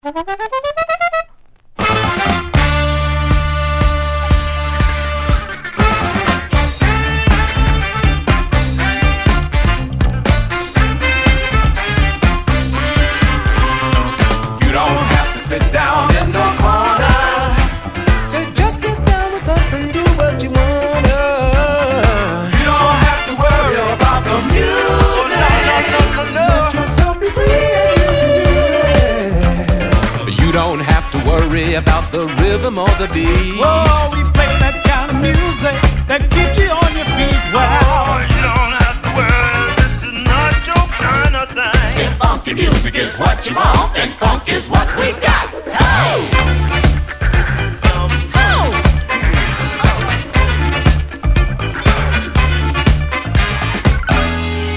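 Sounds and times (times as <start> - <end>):
funky music: 0.0 - 54.7.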